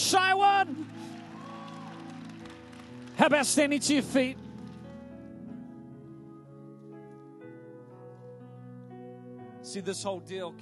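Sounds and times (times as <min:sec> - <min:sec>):
crowd clapping: 0:00.0 - 0:04.9
speech: 0:00.1 - 0:01.1, 0:03.2 - 0:04.4, 0:09.7 - 0:10.6.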